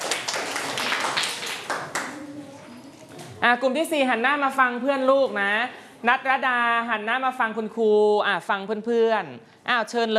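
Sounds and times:
room full of children clapping in a classroom: 0.0s - 2.6s
speech: 3.4s - 10.1s.

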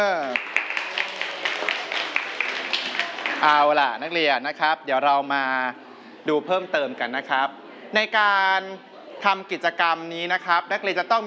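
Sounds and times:
students clapping hands: 0.0s - 3.8s
speech: 3.4s - 11.2s.

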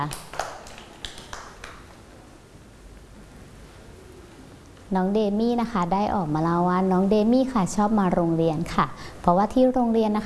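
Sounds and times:
speech: 0.0s - 0.3s, 4.9s - 10.2s
children clapping: 0.0s - 1.9s.

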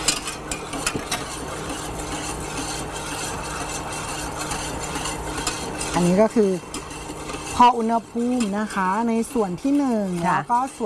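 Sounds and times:
stirring water poured into oil: 0.0s - 10.8s
speech: 6.0s - 6.7s, 7.6s - 10.8s.

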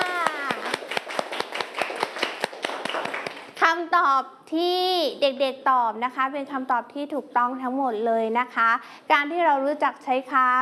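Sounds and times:
children clapping: 0.0s - 3.6s
speech: 3.8s - 10.6s.

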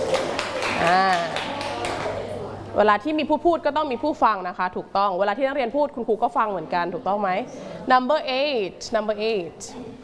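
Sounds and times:
classroom children clapping hands: 0.0s - 2.2s
speech: 0.8s - 1.3s, 2.8s - 10.0s.

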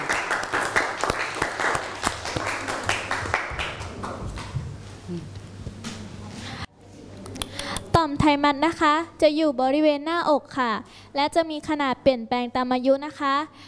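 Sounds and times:
audience applause: 0.0s - 4.4s
speech: 8.0s - 13.6s.

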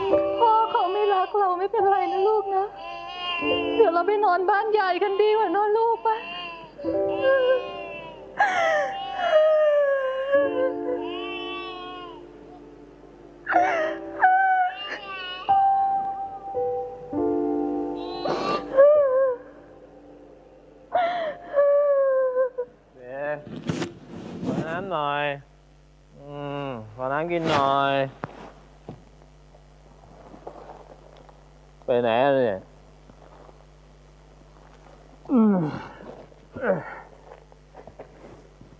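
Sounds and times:
low noise: 0.0s - 38.7s
child crying: 0.4s - 4.0s, 4.8s - 12.2s, 13.5s - 15.9s, 18.0s - 19.6s, 21.0s - 22.8s
speech: 1.4s - 7.6s, 27.4s - 28.3s, 31.9s - 32.7s.

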